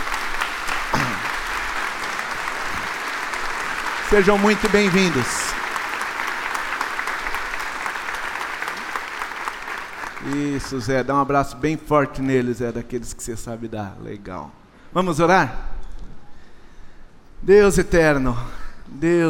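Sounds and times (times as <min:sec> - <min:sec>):
church audience applauding: 0:00.0 - 0:11.0
speech: 0:04.1 - 0:05.5, 0:10.3 - 0:15.7, 0:17.5 - 0:19.2.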